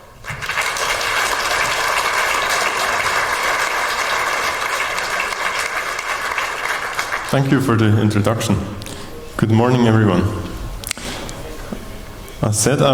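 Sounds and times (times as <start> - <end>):
audience applause: 0.0 - 8.6
speech: 7.3 - 8.8, 9.4 - 10.5, 12.4 - 12.9.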